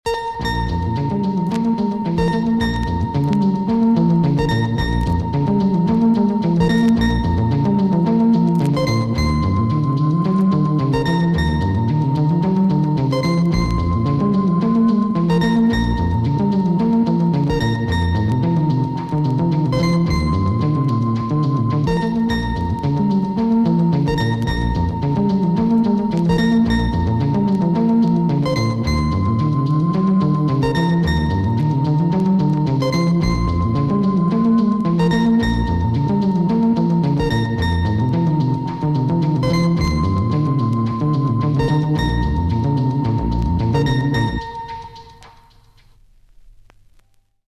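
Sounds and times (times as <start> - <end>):
jazz music in a cellar: 0.1 - 47.2.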